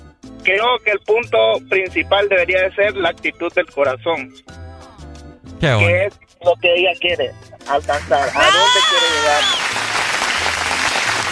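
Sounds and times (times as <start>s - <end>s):
speech: 0.4s - 4.6s, 5.6s - 9.6s
applause sound effect: 7.8s - 11.2s.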